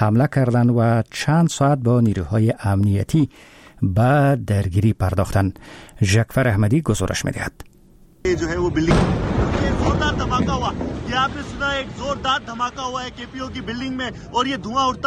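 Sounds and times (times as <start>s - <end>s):
speech: 0.0s - 15.0s
explosion at central police headquarters in Karachi: 8.6s - 13.7s.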